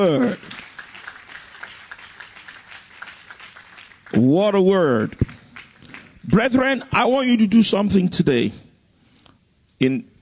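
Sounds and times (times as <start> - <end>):
speech: 0.0 - 0.5, 4.1 - 5.3, 6.3 - 8.6, 9.8 - 10.1
audience applause: 0.0 - 6.8.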